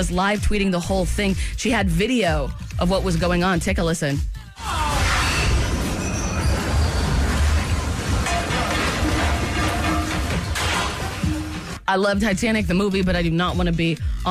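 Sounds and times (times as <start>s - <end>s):
speech: 0.0s - 4.8s, 11.9s - 14.2s
storm hitting a cruise ship at sea off the coast of Norway: 4.9s - 11.8s.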